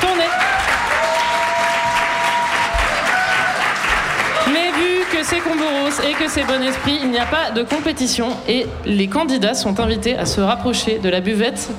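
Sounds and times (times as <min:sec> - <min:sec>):
audience applause: 0:00.0 - 0:07.3
speech: 0:05.3 - 0:11.7.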